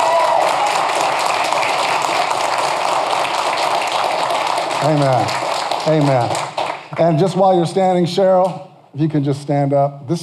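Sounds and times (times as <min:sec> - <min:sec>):
audience applause: 0:00.0 - 0:07.4
speech: 0:04.8 - 0:10.2.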